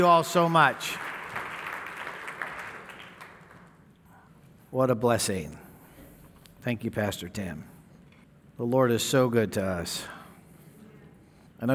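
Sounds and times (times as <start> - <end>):
speech: 0.0 - 1.1, 4.7 - 5.6, 6.6 - 7.7, 8.6 - 10.2
audience clapping for the worship team: 0.0 - 4.0.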